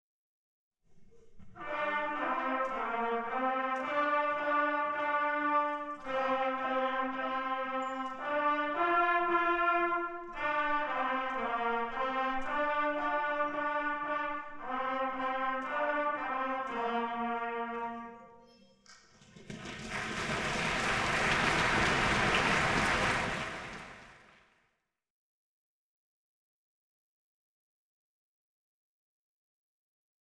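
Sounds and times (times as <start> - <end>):
trumpets: 1.6 - 18.4, 19.9 - 24.4.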